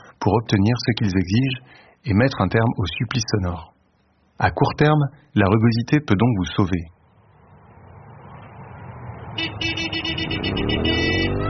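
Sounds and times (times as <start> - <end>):
dense city traffic: 0.0 - 0.9, 6.2 - 11.4
speech: 0.2 - 3.7, 4.4 - 7.0
motorcycle speeding past with screaming engine: 7.6 - 11.4
car horns: 9.3 - 11.4.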